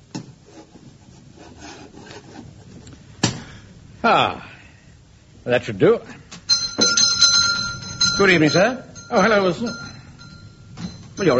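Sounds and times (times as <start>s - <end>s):
chalk drawing on a blackboard: 0.4s - 2.8s
speech: 4.0s - 4.5s, 5.5s - 6.2s, 8.2s - 9.8s, 11.2s - 11.3s.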